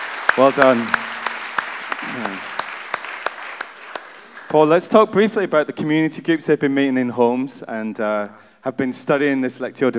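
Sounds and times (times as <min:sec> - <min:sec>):
audience applause: 0:00.0 - 0:04.5
speech: 0:00.4 - 0:01.0, 0:04.5 - 0:09.9.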